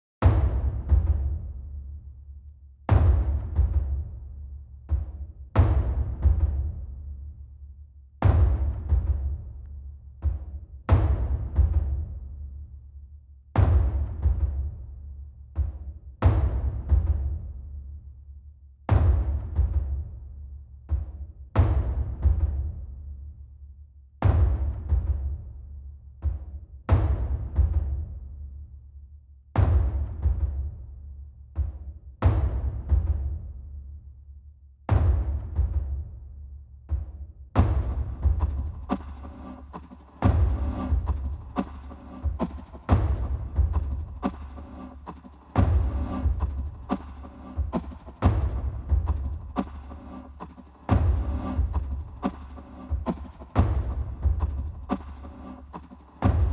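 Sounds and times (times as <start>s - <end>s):
drums: 0.2s - 1.8s, 2.9s - 7.1s, 8.2s - 9.6s, 10.2s - 12.5s, 13.6s - 17.6s, 18.9s - 20.2s, 20.9s - 23.0s, 24.2s - 25.5s, 26.2s - 28.4s, 29.6s - 30.8s, 31.5s - 33.6s, 34.9s - 36.2s, 36.9s - 56.5s.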